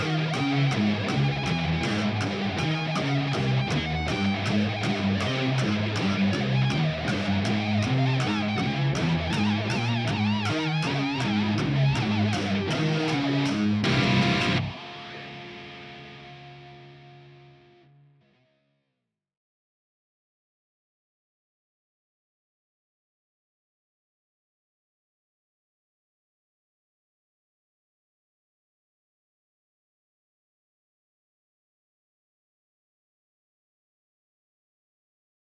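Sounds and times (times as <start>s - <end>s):
guitars: 0.0s - 18.8s.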